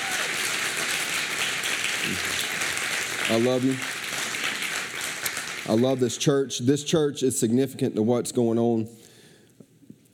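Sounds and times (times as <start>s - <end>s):
audience applause for a pastor: 0.0s - 6.1s
speech: 2.0s - 2.4s, 3.3s - 4.0s, 5.6s - 9.0s.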